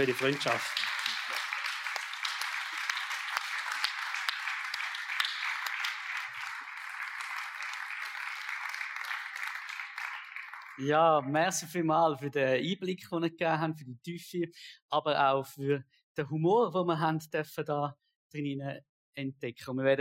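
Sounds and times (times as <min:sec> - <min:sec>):
speech: 0:00.0 - 0:00.9, 0:10.8 - 0:20.0
audience applause: 0:00.0 - 0:11.3.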